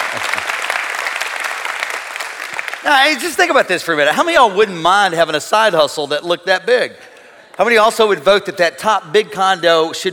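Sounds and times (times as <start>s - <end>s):
church audience clapping halfheartedly: 0.0s - 3.5s
speech: 2.8s - 7.0s, 7.6s - 10.1s.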